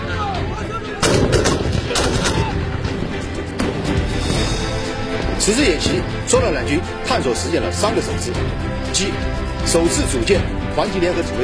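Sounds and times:
heavy cracking gunfire blasts during a military exercise: 1.0 - 3.9
continuous loud rumble of firing during a military exercise: 1.0 - 5.4
speech: 5.5 - 11.4.

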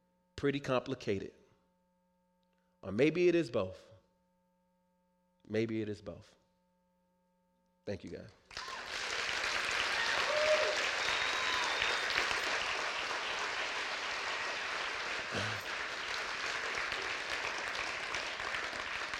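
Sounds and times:
speech: 0.4 - 1.4, 2.8 - 3.9, 5.5 - 6.4, 7.9 - 8.6
audience clapping: 8.1 - 19.1.

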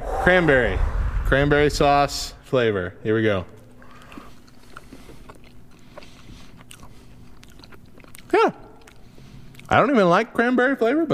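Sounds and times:
speech: 0.2 - 3.6, 9.7 - 11.1
person chewing candy corn: 3.8 - 9.7.

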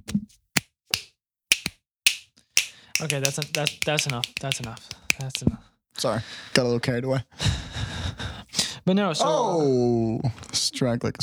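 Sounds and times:
loud finger snap: 0.6 - 5.4
speech: 3.0 - 7.6, 8.8 - 11.2.

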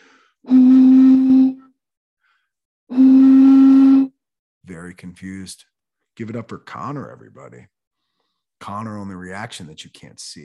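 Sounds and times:
blowing across a bottle's mouth: 0.4 - 1.8, 2.9 - 4.2
speech: 5.0 - 7.8, 8.6 - 10.4.

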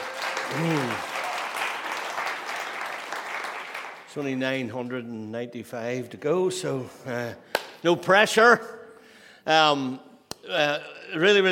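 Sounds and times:
audience applause: 0.0 - 4.1
speech: 0.5 - 1.1, 4.2 - 8.8, 9.5 - 11.5.

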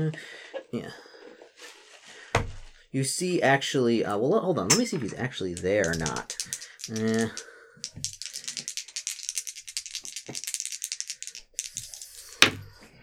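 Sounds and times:
speech: 0.0 - 1.1, 2.9 - 8.1
cat playing with dropped dice, dice clicking and clattering: 4.7 - 13.0.

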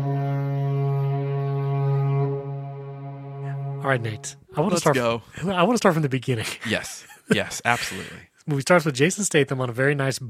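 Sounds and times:
spoiler warning horn sound effect: 0.0 - 5.1
speech: 3.8 - 10.2.

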